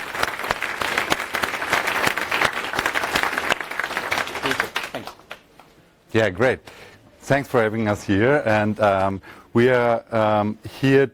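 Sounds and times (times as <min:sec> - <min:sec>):
audience applause: 0:00.0 - 0:05.4
speech: 0:06.2 - 0:11.1.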